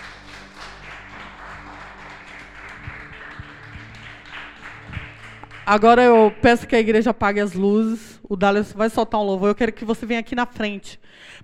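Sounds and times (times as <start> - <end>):
audience applauding: 0.0 - 6.6
speech: 5.7 - 11.4.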